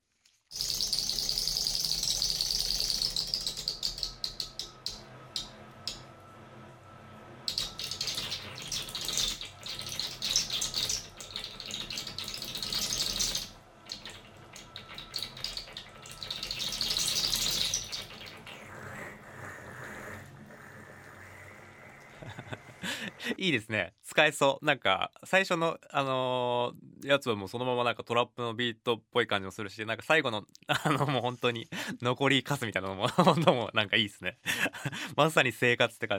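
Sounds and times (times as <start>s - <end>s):
washing machine hose sucking last bathwater: 0.0s - 5.0s, 7.5s - 23.3s
laughter: 22.1s - 23.4s, 30.7s - 31.4s
speech: 23.4s - 36.1s.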